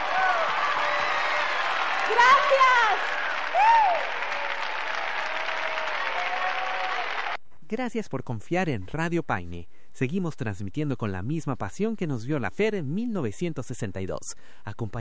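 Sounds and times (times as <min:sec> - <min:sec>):
audience applause: 0:00.0 - 0:07.4
speech: 0:02.1 - 0:04.2, 0:07.7 - 0:15.0.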